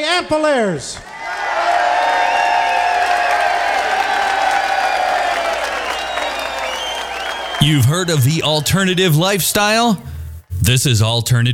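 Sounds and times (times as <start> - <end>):
speech: 0.0 - 1.1, 7.6 - 10.1, 10.7 - 11.5
crowd applause: 1.1 - 10.1
high whistles: 4.9 - 9.2.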